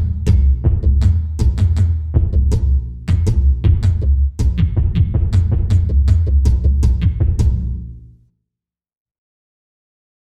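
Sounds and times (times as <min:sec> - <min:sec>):
drums: 0:00.0 - 0:08.0.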